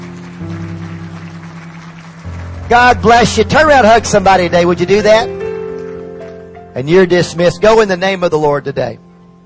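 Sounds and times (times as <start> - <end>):
congregation clapping during a church service: 0.0 - 6.8
speech: 2.7 - 5.4, 6.8 - 9.0.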